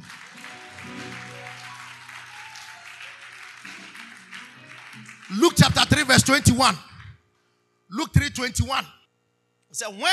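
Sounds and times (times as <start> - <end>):
crowd applause: 0.0 - 7.1
speech: 5.3 - 6.9, 8.4 - 9.0, 9.7 - 10.1.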